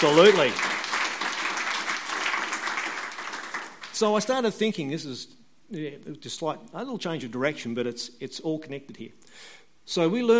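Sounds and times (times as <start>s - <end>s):
speech: 0.0s - 0.7s, 4.0s - 10.3s
congregation applauding during a church sermon: 0.0s - 4.1s.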